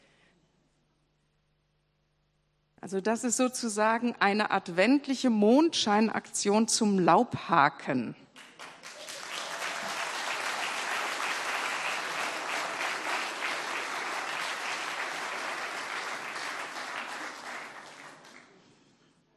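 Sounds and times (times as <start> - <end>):
speech: 2.8 - 8.2
audience applause: 8.4 - 18.6.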